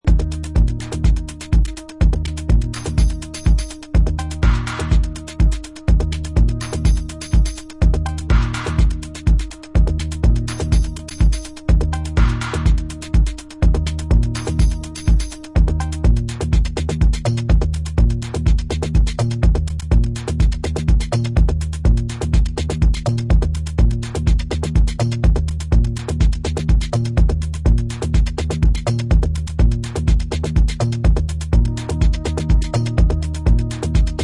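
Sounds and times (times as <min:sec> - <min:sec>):
instrumental music: 0:00.0 - 0:34.2.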